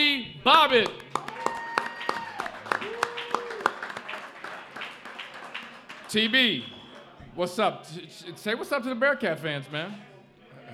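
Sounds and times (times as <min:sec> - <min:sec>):
speech: 0:00.4 - 0:01.0, 0:06.1 - 0:06.7, 0:07.4 - 0:10.1
audience applause: 0:00.8 - 0:07.2.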